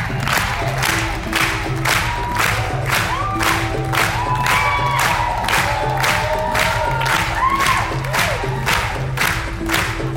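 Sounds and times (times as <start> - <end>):
Cannes festival audience clapping in rhythm for a dancer: 0.0 - 10.1
audience whoops and shouts: 2.0 - 8.7.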